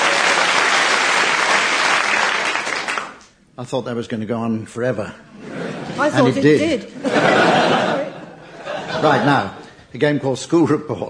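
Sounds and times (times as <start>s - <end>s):
audience applause: 0.0s - 3.2s
speech: 3.6s - 7.8s, 9.0s - 11.0s
laughter: 5.4s - 9.8s.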